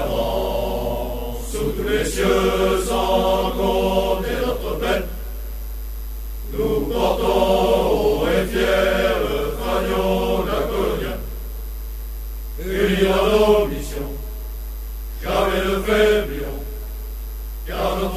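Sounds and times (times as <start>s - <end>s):
chanting: 0.0s - 5.4s, 6.4s - 11.4s, 12.6s - 14.3s, 15.2s - 16.7s, 17.6s - 18.1s.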